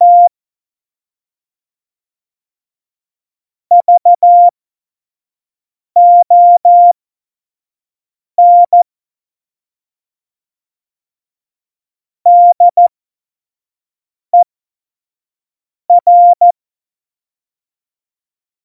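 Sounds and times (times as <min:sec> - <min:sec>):
CW Morse code at tempo 70: 0:00.0 - 0:00.3, 0:03.7 - 0:04.5, 0:06.0 - 0:07.0, 0:08.4 - 0:08.8, 0:12.3 - 0:12.8, 0:15.9 - 0:16.6.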